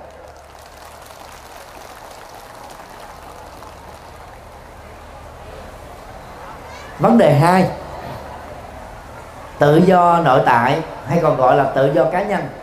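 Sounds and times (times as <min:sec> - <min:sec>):
audience applause: 0:00.0 - 0:05.4
speech: 0:07.0 - 0:07.8, 0:09.6 - 0:12.6.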